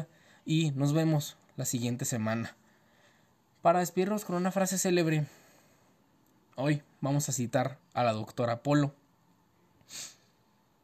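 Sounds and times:
speech: 0.0s - 2.6s, 3.6s - 5.4s, 6.6s - 9.0s, 9.9s - 10.2s
wet sniff from a person with a runny nose: 9.9s - 10.3s.

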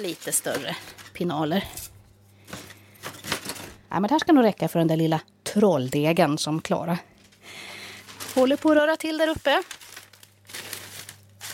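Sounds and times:
newspaper being crumpled: 0.0s - 1.3s, 7.2s - 11.5s
speech: 0.0s - 1.9s, 3.9s - 7.1s, 8.4s - 9.8s.

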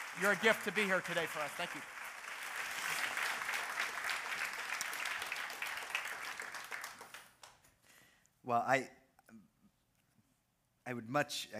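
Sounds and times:
audience applause welcoming a guest speaker: 0.0s - 7.5s
speech: 0.2s - 2.0s, 8.4s - 9.5s, 10.9s - 11.5s.

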